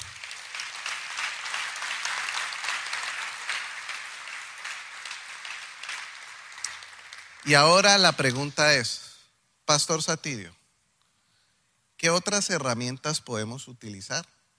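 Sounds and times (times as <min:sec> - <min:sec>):
audience applause: 0:00.0 - 0:08.5
speech: 0:07.4 - 0:09.1, 0:09.7 - 0:10.6, 0:12.0 - 0:14.4.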